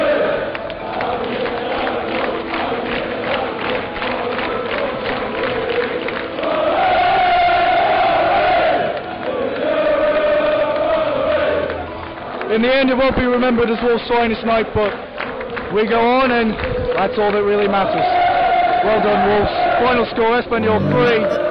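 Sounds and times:
crowd chanting: 0.0s - 11.9s, 20.6s - 21.4s
football stadium crowd cheering: 0.0s - 12.7s, 16.4s - 20.0s, 20.6s - 21.4s
speech: 12.6s - 15.0s, 15.7s - 18.2s, 18.8s - 21.4s.

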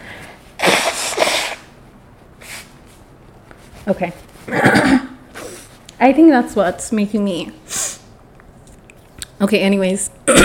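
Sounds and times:
person blowing nose: 0.5s - 1.8s, 2.4s - 2.8s, 5.3s - 5.8s, 7.7s - 8.0s
speech: 3.9s - 5.1s, 6.0s - 7.6s, 9.4s - 10.4s.

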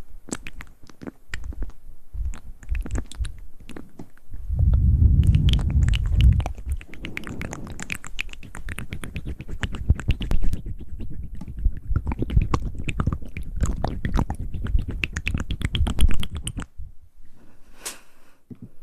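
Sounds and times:
wet mouth clicks smacks and crackles: 0.2s - 16.7s
heavy low rubbing: 4.4s - 12.1s.

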